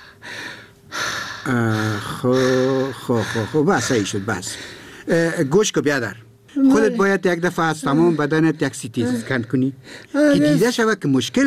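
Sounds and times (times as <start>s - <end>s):
patient deep breathing during a medical examination: 0.0s - 5.5s, 9.2s - 10.2s
speech: 1.5s - 11.4s.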